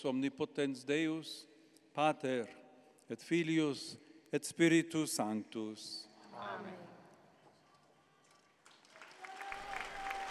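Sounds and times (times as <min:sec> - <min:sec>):
speech: 0:00.0 - 0:06.9
Christian faithful applauding after the Angelus prayer: 0:08.6 - 0:10.2.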